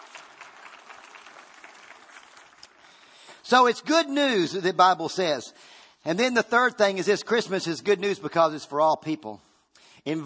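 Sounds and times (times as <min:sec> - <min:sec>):
audience clapping: 0:00.0 - 0:03.4
speech: 0:03.5 - 0:09.4, 0:10.0 - 0:10.2.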